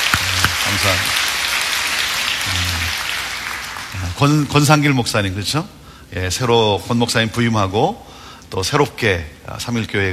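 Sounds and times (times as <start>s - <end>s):
audience applause: 0.0s - 4.4s
speech: 0.8s - 1.3s, 4.2s - 10.1s.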